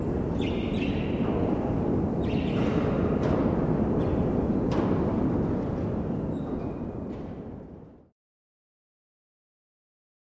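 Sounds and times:
wind in a hangar: 0.0 - 8.1.

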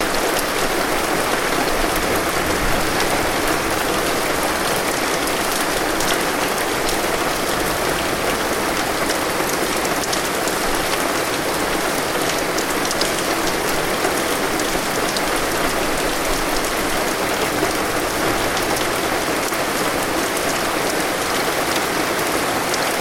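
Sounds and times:
heavy rain on a street: 0.0 - 22.9.

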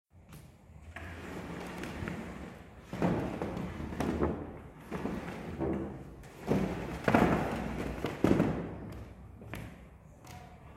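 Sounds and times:
ladder dragging: 0.7 - 9.0.

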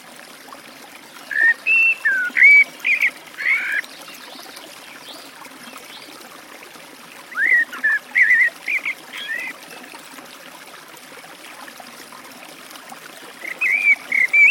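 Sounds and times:
Eurasian blackbird delivering warbled whistles beside a forest stream: 1.3 - 3.8, 7.4 - 9.5, 13.4 - 14.5.

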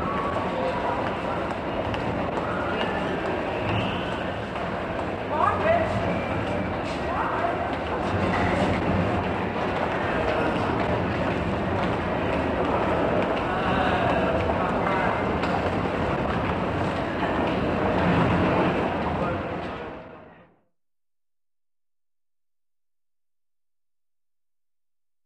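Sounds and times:
passenger railway station noise: 0.0 - 20.5.

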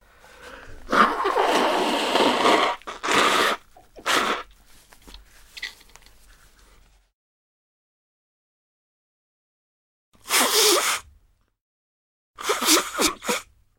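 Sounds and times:
people blowing noses: 0.3 - 4.5, 10.2 - 11.1, 12.4 - 13.5.

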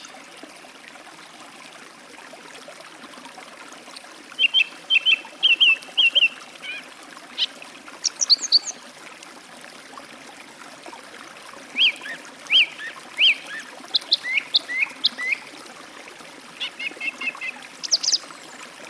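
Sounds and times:
song thrush singing by a forest stream: 4.4 - 6.4, 7.4 - 8.8, 11.8 - 15.4, 16.6 - 18.3.

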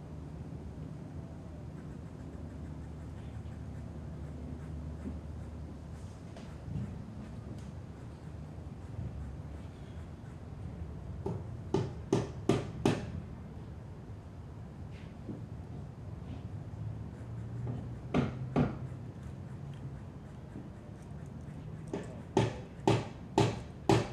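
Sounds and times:
sounds outside the window: 0.0 - 24.1
hammer knocking indoors: 11.2 - 13.1, 17.6 - 18.9, 21.9 - 24.1.

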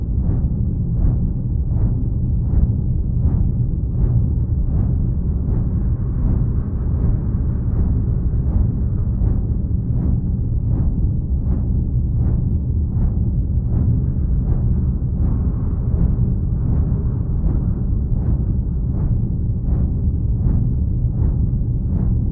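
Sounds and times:
layered sound design of a large creepy fan in close position: 0.0 - 22.3.

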